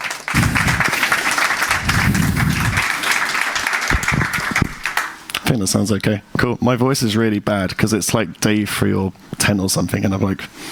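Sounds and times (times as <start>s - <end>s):
audience applause: 0.0s - 5.2s
speech: 5.6s - 10.7s.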